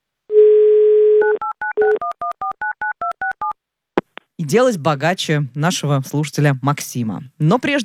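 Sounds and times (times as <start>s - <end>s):
steady phone dial tone: 0.3s - 3.6s
speech: 4.4s - 7.8s.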